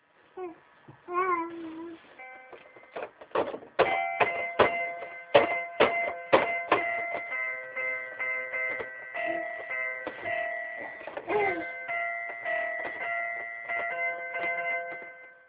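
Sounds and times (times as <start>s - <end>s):
keyboard playing: 3.8s - 15.4s.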